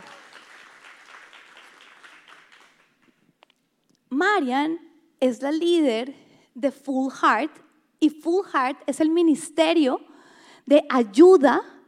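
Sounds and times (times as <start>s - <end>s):
audience applause: 0.0s - 3.1s
speech: 4.2s - 10.1s, 10.7s - 11.7s.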